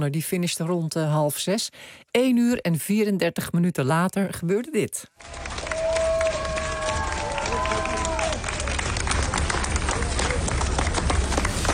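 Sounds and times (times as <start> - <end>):
speech: 0.0 - 5.5
crowd at the finish of a race clapping and cheering: 5.2 - 11.7.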